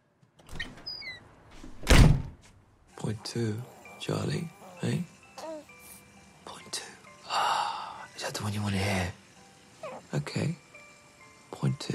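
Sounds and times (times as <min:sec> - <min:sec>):
door sliding and shutting: 0:00.4 - 0:02.4
speech: 0:03.1 - 0:05.1, 0:08.4 - 0:09.2, 0:10.1 - 0:10.6, 0:11.5 - 0:11.9.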